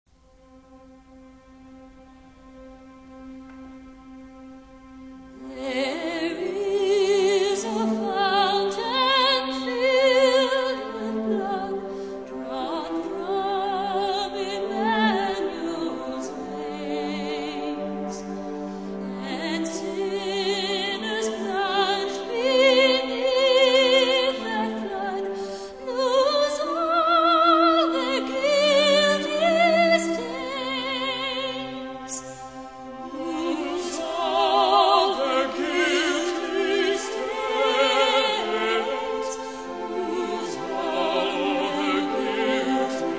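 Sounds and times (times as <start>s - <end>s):
philharmonic orchestra playing: 0.4s - 43.1s
choir singing: 1.0s - 43.1s.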